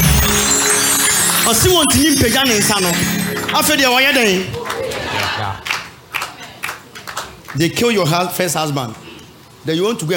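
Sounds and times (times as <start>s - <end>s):
crowd clapping: 0.0s - 7.8s
speech: 1.5s - 4.6s, 7.6s - 9.0s, 9.6s - 10.1s.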